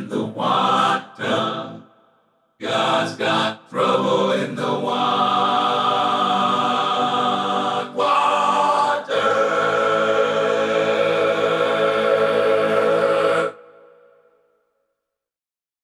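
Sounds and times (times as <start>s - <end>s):
gospel music: 0.0s - 2.0s, 2.6s - 14.2s.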